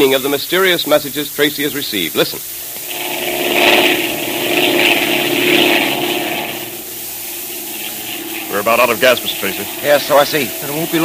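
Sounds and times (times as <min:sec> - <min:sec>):
speech: 0:00.0 - 0:02.7, 0:08.6 - 0:11.0
propeller-plane engine droning in flight: 0:02.6 - 0:11.0.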